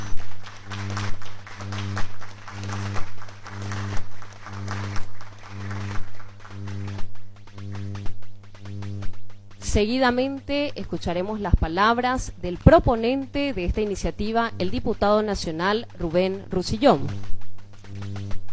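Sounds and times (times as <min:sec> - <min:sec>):
loud applause: 0:00.2 - 0:06.6
speech: 0:09.7 - 0:17.3.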